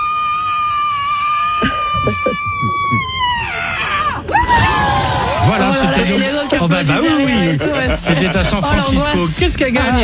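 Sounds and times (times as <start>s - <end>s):
woman's record-loud scream at 121 decibels: 0.0s - 4.8s
laughter: 1.6s - 3.4s, 5.4s - 10.0s
speech: 6.0s - 10.0s.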